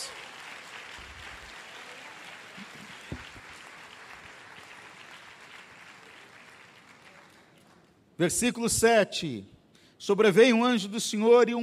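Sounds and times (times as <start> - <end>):
audience applauding: 0.0 - 8.0
speech: 8.2 - 11.6.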